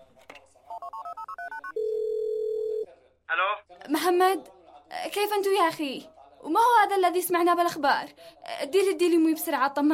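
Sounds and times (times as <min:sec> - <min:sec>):
touch-tone dialing beeps: 0:00.7 - 0:02.8
speech: 0:03.9 - 0:09.9.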